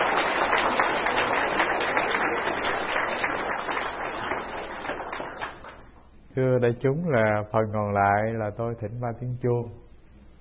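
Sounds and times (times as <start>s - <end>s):
audience applause: 0.0s - 5.9s
speech: 6.4s - 9.8s.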